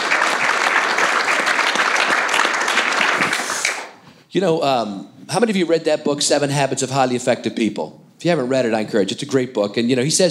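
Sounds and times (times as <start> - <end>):
audience applause: 0.0 - 4.0
speech: 4.4 - 10.2.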